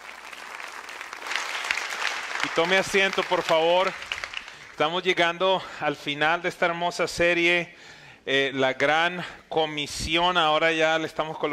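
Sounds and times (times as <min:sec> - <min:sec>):
audience applause: 0:00.0 - 0:04.8
speech: 0:02.5 - 0:04.1, 0:04.8 - 0:11.5.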